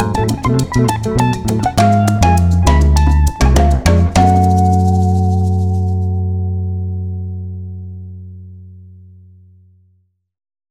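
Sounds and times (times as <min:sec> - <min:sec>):
guitar playing a harmonic minor b5 scale: 0:00.0 - 0:09.1.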